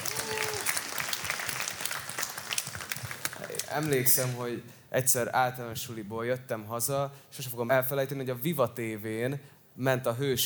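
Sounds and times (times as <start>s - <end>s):
audience applause: 0.0s - 4.4s
speech: 3.7s - 10.4s.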